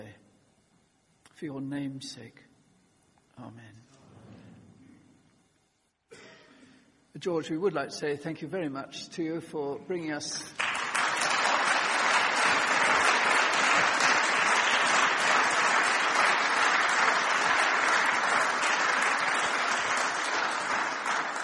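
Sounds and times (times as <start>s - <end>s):
speech: 1.4s - 2.5s, 3.4s - 4.0s, 7.2s - 10.6s
audience applause: 10.6s - 21.4s.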